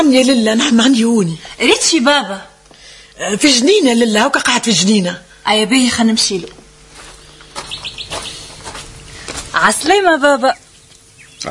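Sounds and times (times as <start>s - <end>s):
speech: 0.0s - 2.5s, 3.2s - 6.6s, 9.6s - 10.6s
birds chirping in a sunny garden: 6.7s - 11.4s.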